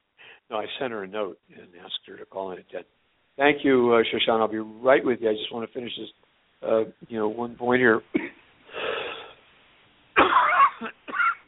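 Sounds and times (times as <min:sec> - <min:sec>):
speech: 0:00.5 - 0:08.4
person coughing over a phone line: 0:08.1 - 0:08.4, 0:10.2 - 0:11.4.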